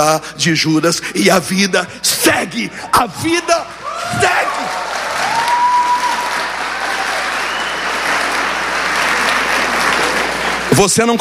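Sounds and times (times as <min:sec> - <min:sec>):
speech: 0:00.0 - 0:04.6, 0:10.8 - 0:11.2
crowd applause: 0:03.8 - 0:11.2.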